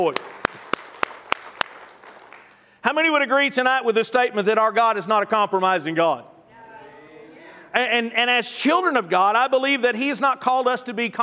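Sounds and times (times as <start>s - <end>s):
speech: 0.0s - 0.4s, 2.8s - 6.3s, 7.7s - 11.2s
audience hand clapping: 0.0s - 2.7s
noise: 0.0s - 11.2s.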